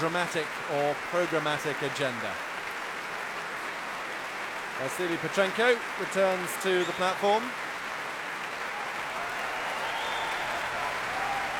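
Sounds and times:
speech: 0.0s - 2.5s, 4.8s - 7.6s
large concert crowd clapping: 0.0s - 11.5s
cheers and whoops: 8.6s - 11.5s.

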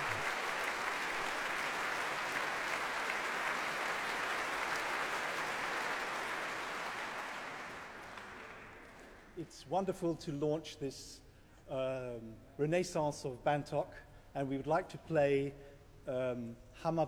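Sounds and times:
audience applause: 0.0s - 9.4s
speech: 9.4s - 17.0s.

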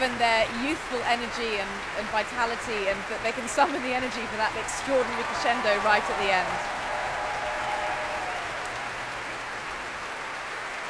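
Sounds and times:
speech: 0.0s - 6.8s
concert audience applause for the leader of the orchestra: 0.0s - 10.8s.

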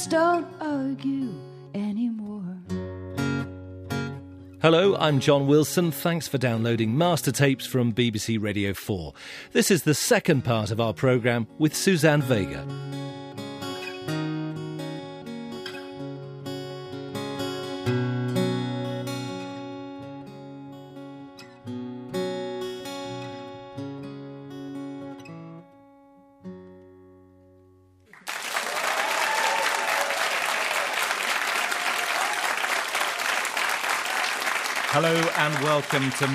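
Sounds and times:
person singing: 0.0s - 2.6s
speech: 0.0s - 2.8s, 4.6s - 13.2s, 35.4s - 36.3s
acoustic guitar: 0.0s - 28.2s, 33.4s - 36.3s
studio audience applause: 28.1s - 36.3s.

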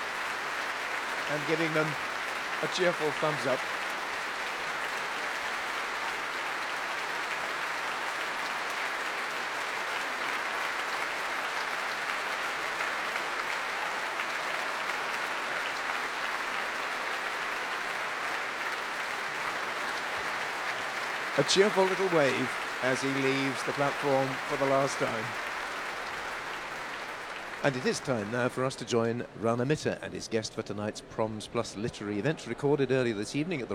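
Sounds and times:
concert audience applause: 0.0s - 29.4s
speech: 1.3s - 3.8s, 21.4s - 25.5s, 27.6s - 33.7s.

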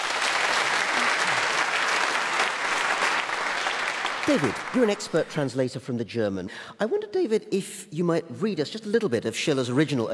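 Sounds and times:
audience applauding to welcome guests: 0.0s - 5.4s
speech: 4.3s - 10.1s.

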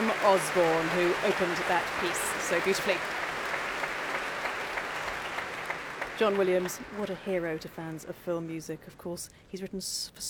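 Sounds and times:
concert audience applause for an orchestra: 0.0s - 7.4s
speech: 0.2s - 3.2s, 6.2s - 10.2s.

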